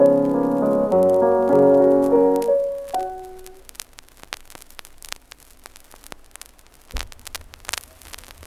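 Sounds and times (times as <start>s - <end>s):
waltz music: 0.0s - 3.6s.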